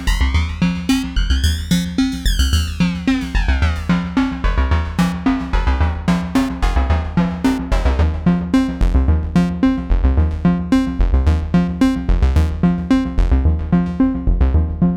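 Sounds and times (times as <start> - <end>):
Doepfer Dark Energy Mk1 synthesizer FM sound: 0.0 - 14.9.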